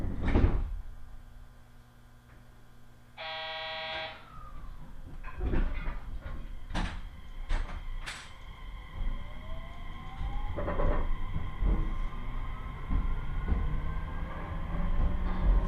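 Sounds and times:
7000 and 7100 series electric train on the Yosan Line: 3.2 - 15.6.

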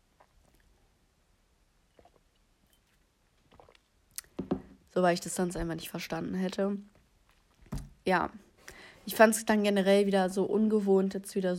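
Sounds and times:
person drinking and swallowing: 0.0 - 0.9, 1.8 - 4.9
speech: 5.0 - 7.0, 8.0 - 8.4, 9.0 - 11.5.

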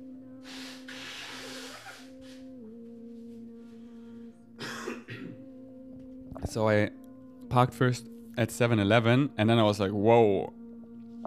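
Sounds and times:
person blowing nose: 0.4 - 2.4
speech: 6.5 - 10.6.

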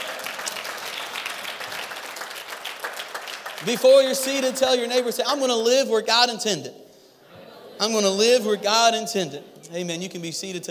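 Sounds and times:
audience hand clapping applause: 0.0 - 4.1
speech: 3.6 - 6.8, 7.8 - 10.7.

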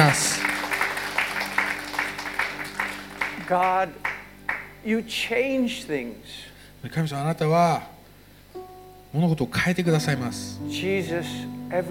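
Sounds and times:
applause: 0.0 - 4.8
speech: 0.1 - 0.3, 3.5 - 4.1, 4.8 - 8.0, 9.1 - 11.8.

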